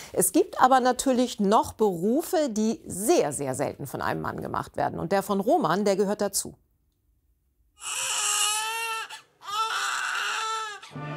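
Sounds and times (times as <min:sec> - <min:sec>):
speech: 0:00.1 - 0:06.6
newborn baby crying: 0:07.8 - 0:11.0.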